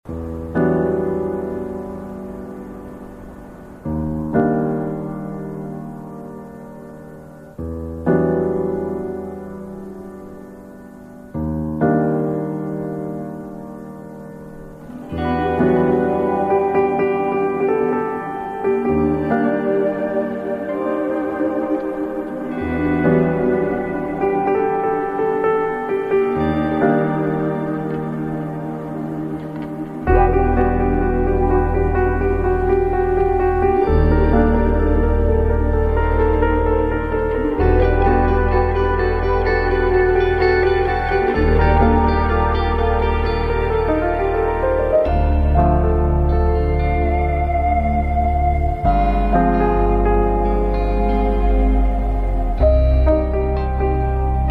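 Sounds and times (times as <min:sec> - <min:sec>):
instrumental music: 0:00.0 - 0:54.4.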